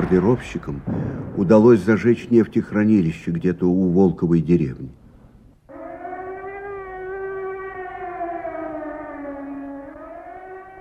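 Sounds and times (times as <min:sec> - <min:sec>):
speech: 0:00.1 - 0:05.0
air raid siren wailing: 0:05.7 - 0:10.7.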